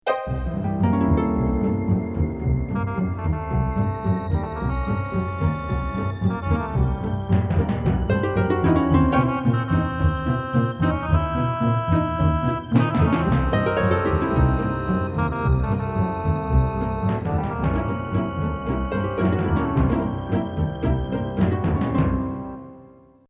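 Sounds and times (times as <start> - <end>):
orchestral music: 0.1 - 22.9.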